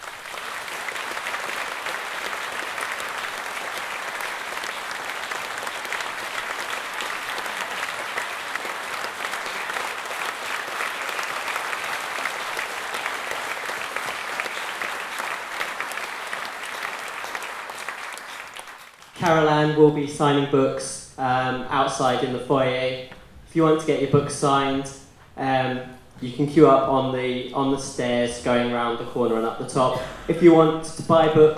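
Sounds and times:
large audience applause: 0.0 - 19.2
speech: 19.2 - 31.5.

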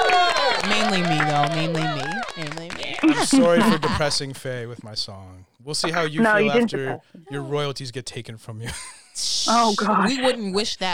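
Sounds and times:
audience clapping: 0.0 - 4.7
laughter: 0.1 - 5.0, 5.8 - 7.7, 8.6 - 10.4
speech: 1.0 - 10.9.

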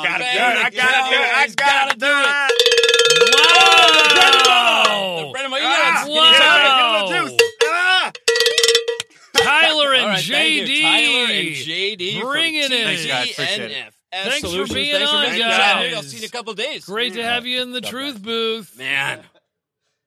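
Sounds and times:
laughter: 0.0 - 2.4, 3.4 - 7.4, 9.3 - 19.3
speech: 0.0 - 3.0, 12.1 - 19.4
cowbells being banged: 2.2 - 5.0, 7.2 - 9.7.

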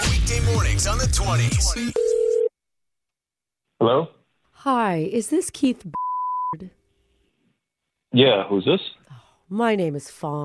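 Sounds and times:
speech: 0.8 - 2.2, 3.8 - 6.8, 8.1 - 10.4
telephone ringing tone as prank call connects: 1.9 - 2.5.

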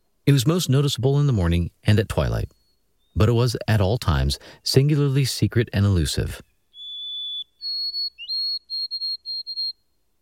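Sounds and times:
speech: 0.3 - 2.6, 3.2 - 6.5
white-throated sparrow whistling song: 2.5 - 3.2, 6.4 - 10.0.

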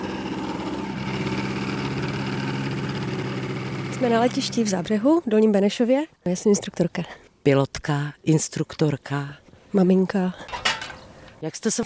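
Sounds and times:
ultralight aircraft taxiing: 0.0 - 5.0
speech: 4.0 - 10.6, 11.4 - 11.8.

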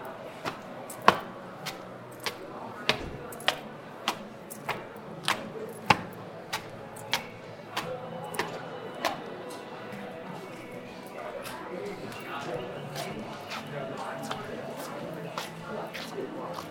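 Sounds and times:
crowd murmur in the Apple store in Sanlitun, Beijing: 0.0 - 16.6.

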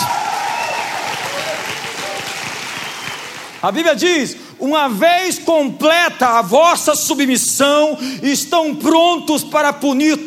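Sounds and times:
audience clapping: 0.0 - 3.9
speech: 3.6 - 10.2.

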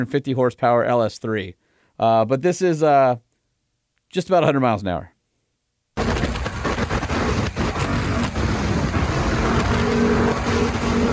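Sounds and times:
speech: 0.0 - 3.3, 4.1 - 5.1
wind noise on the microphone: 6.0 - 11.1.

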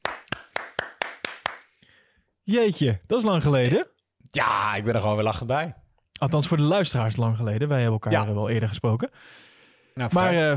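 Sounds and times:
applause: 0.0 - 1.8
speech: 2.5 - 10.5.

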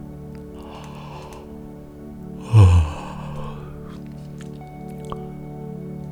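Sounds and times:
yawn: 0.6 - 1.6, 2.4 - 4.2.

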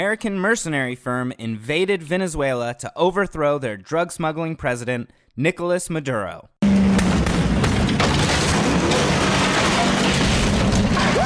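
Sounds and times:
speech: 0.0 - 6.5
explosion roar with rumbling debris from the film Bad Boys 2: 6.6 - 11.2.

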